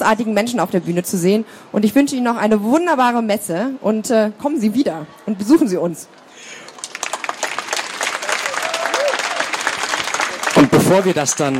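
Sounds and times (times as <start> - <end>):
speech: 0.0 - 6.2, 10.9 - 11.5
audience applause: 6.5 - 11.5.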